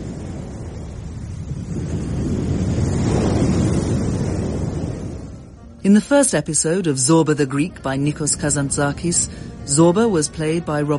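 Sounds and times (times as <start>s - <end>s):
sea waves washing on shore: 0.0s - 10.9s
speech: 5.8s - 10.9s.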